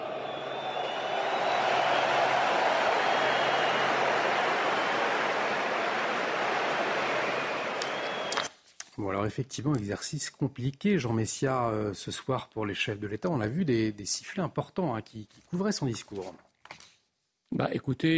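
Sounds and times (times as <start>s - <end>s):
huge stadium crowd applauding: 0.0s - 8.5s
speech: 9.0s - 16.5s, 17.5s - 18.1s.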